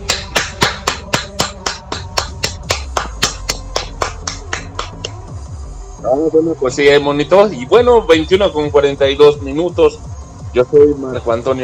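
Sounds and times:
brisk hand claps: 0.0 - 5.3
speech: 6.1 - 11.6.

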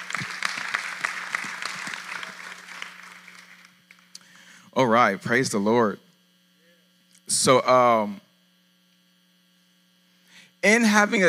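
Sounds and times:
audience applause in a large hall: 0.0 - 4.1
speech: 4.8 - 6.0, 7.4 - 8.2, 10.6 - 11.2.

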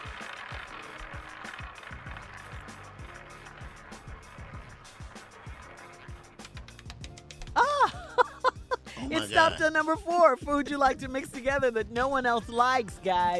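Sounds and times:
spinning prize wheel ticking: 0.0 - 7.6
laughter: 7.6 - 9.7, 12.2 - 13.3
speech: 9.1 - 13.3.

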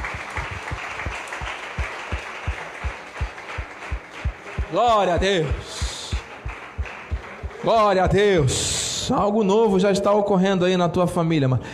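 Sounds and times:
audience applause: 0.0 - 8.7
speech: 4.7 - 5.8, 7.6 - 11.7.

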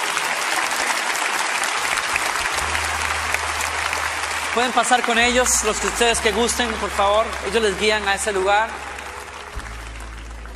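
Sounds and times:
crowd applause: 0.0 - 10.5
low hum: 2.4 - 10.5
speech: 4.6 - 8.9.

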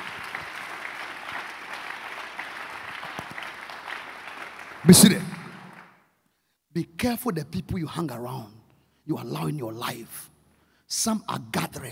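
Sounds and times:
audience applause: 0.0 - 5.9
speech: 4.8 - 5.4, 6.8 - 10.3, 10.9 - 11.8.

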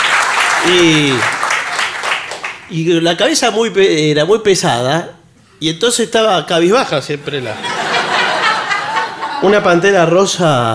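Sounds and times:
audience applause: 0.0 - 2.6
speech: 0.6 - 1.4, 2.7 - 7.8, 9.4 - 10.7
laughter: 7.3 - 10.0.

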